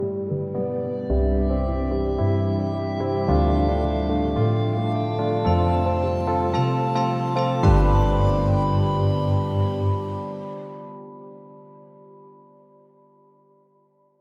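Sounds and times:
soft happy jingle: 0:01.1 - 0:10.8.

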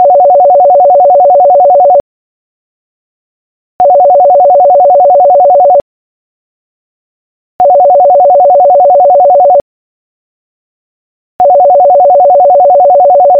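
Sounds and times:
landline phone ringing: 0:00.0 - 0:02.0, 0:03.8 - 0:05.8, 0:07.6 - 0:09.6, 0:11.4 - 0:13.3.

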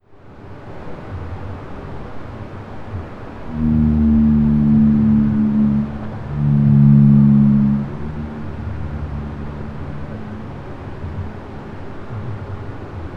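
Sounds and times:
blue whale low harmonic tonal moans: 0:03.3 - 0:12.5.

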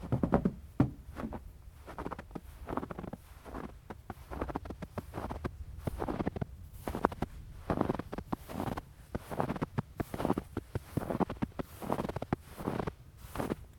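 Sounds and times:
footsteps in snow: 0:00.0 - 0:13.7.

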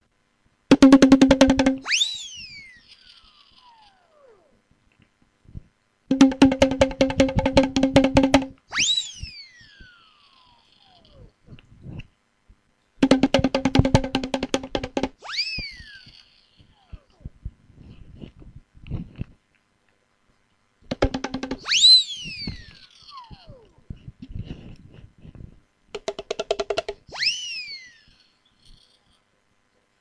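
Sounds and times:
bongo drums: 0:00.7 - 0:01.9, 0:06.1 - 0:08.6, 0:13.0 - 0:15.2, 0:20.9 - 0:22.8, 0:25.9 - 0:27.2.

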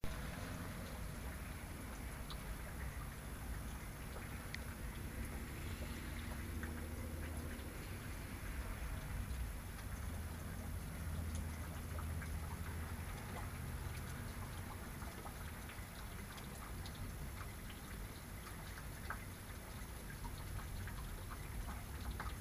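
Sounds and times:
raindrops on the windowsill: 0:00.0 - 0:22.3.

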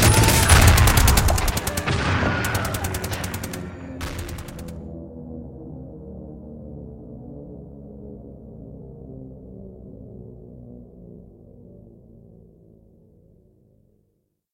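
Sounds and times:
war bombs: 0:00.0 - 0:04.8
aircraft flyby: 0:00.0 - 0:05.0
siren: 0:00.0 - 0:13.6.

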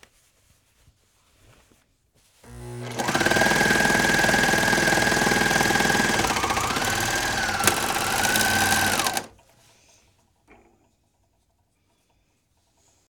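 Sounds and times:
serger sewing machine: 0:02.4 - 0:09.4.

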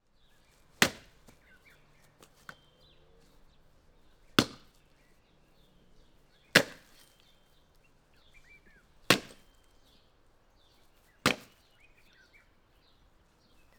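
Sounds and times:
axe chopping a tree trunk: 0:00.7 - 0:02.6, 0:04.2 - 0:04.8, 0:06.4 - 0:07.2, 0:08.8 - 0:09.7, 0:11.1 - 0:11.8.

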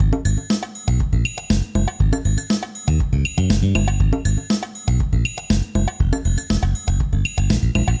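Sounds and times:
bass line theme loop: 0:00.0 - 0:07.9.

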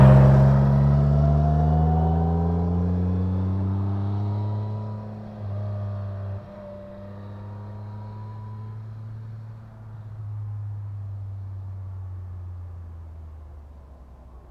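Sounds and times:
motorcycle passing at 40 km per hour: 0:00.0 - 0:09.4.

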